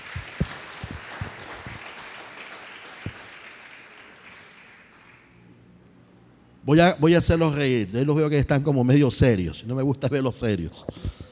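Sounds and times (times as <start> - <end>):
audience applause: 0.0 - 5.4
speech: 6.7 - 11.3.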